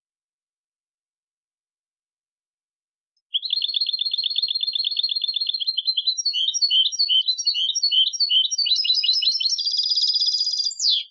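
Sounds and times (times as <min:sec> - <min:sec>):
European goldfinch Carduelis carduelis singing: 0:03.3 - 0:11.0.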